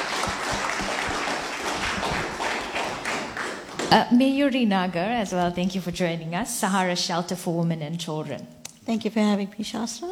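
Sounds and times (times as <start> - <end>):
audience applause: 0.0 - 3.9
speech: 3.9 - 10.1.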